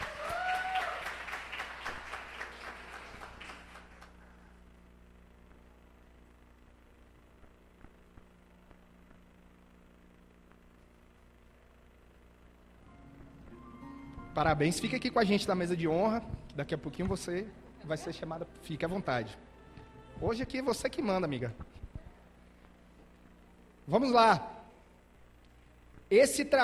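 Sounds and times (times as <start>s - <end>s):
applause: 0.0s - 4.5s
speech: 14.4s - 19.4s, 20.2s - 21.8s, 23.9s - 24.5s, 26.1s - 26.6s.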